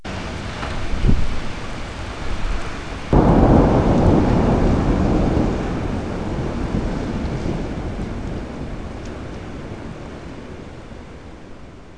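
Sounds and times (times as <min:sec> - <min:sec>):
thunder: 0:03.1 - 0:11.9.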